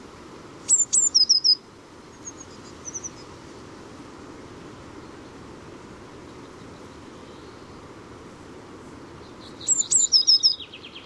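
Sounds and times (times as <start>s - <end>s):
faint background noise: 0.0s - 11.0s
Eurasian blue tit singing: 0.7s - 1.6s, 9.5s - 11.0s.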